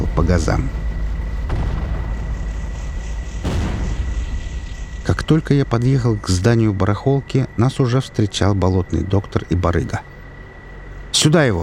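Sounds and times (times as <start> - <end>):
speech: 0.2 - 0.8, 5.3 - 10.1, 11.1 - 11.6
grenades exploding: 1.4 - 5.7.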